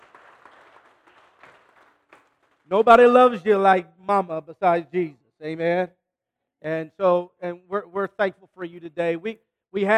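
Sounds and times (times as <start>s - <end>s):
audience clapping for mothers: 0.0s - 2.7s
speech: 2.7s - 6.0s, 6.6s - 9.9s.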